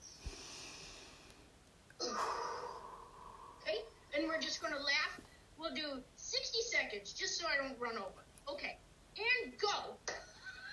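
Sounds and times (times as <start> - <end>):
faint breath noise: 0.0 - 4.1
forceful exhale in a breathing exercise: 2.0 - 3.7
speech: 4.5 - 10.1.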